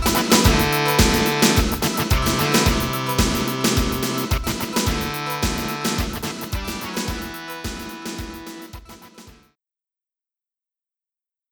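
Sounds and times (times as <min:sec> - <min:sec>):
coin sound effect on SC-55: 0:00.0 - 0:08.8.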